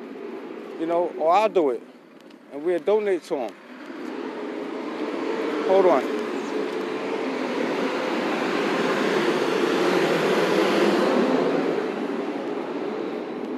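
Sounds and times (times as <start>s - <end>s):
heavy trucks passing: 0.0s - 13.5s
speech: 0.8s - 1.9s, 2.5s - 4.0s, 5.7s - 6.2s.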